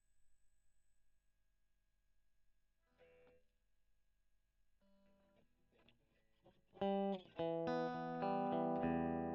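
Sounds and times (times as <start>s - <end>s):
electric guitar: 4.9s - 9.3s.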